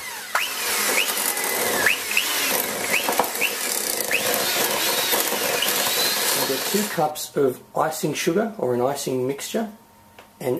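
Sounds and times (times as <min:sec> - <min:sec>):
electric mixer beating soft butter for a butter frosting: 0:00.0 - 0:07.0
speech: 0:06.7 - 0:09.8, 0:10.4 - 0:10.5.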